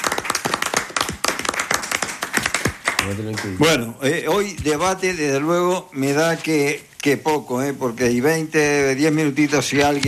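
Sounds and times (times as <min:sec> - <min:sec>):
audience applause: 0:00.0 - 0:03.8
speech: 0:03.1 - 0:10.0.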